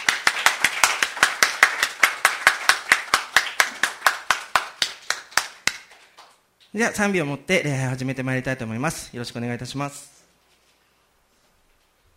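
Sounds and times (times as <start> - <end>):
audience clapping in thanks: 0.0 - 6.4
speech: 6.8 - 10.1.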